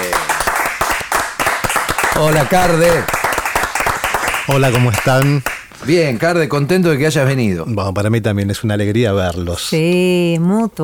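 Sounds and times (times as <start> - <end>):
audience applause: 0.0 - 5.7
speech: 2.2 - 3.2, 4.5 - 10.8.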